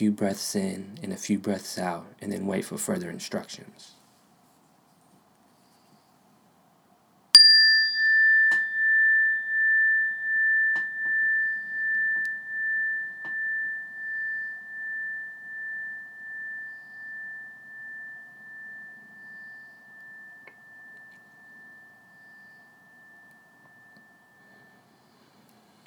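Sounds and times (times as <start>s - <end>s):
speech: 0.0s - 4.0s
meditation bell ringing: 7.4s - 25.8s.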